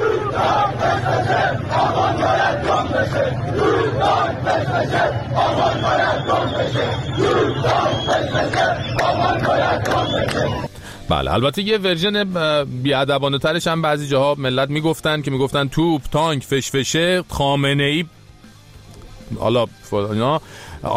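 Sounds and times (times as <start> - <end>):
protest crowd chanting slogans: 0.0 - 10.7
speech: 0.4 - 2.4, 9.2 - 18.2, 19.3 - 20.9.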